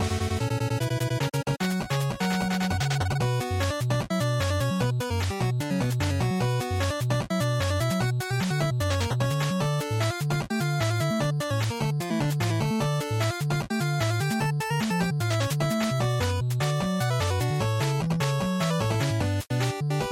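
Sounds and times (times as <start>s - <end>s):
NES action boss music loop: 0.0s - 20.1s.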